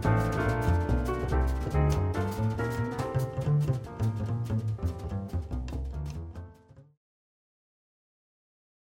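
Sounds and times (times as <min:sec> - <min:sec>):
jazz trio playing: 0:00.0 - 0:06.8.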